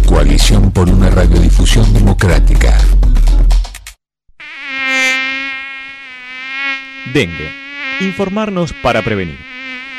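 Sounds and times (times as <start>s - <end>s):
speech: 0.2s - 3.1s, 7.1s - 9.5s
dengue-transmitting mosquito buzzing: 4.4s - 9.9s.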